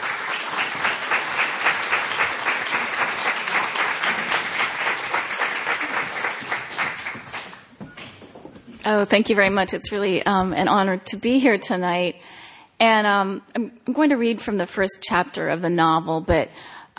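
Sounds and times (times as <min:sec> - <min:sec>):
audience applause welcoming two authors at a book reading in Philadelphia: 0:00.0 - 0:07.7
speech: 0:08.9 - 0:12.2, 0:12.8 - 0:16.9.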